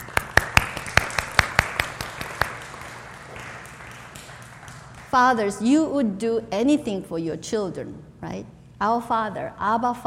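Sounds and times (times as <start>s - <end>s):
small group clapping: 0.0s - 5.6s
speech: 5.1s - 10.0s.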